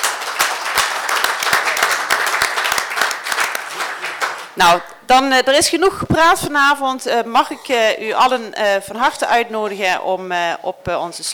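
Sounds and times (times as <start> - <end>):
audience applause: 0.0 - 4.6
speech: 4.6 - 11.3.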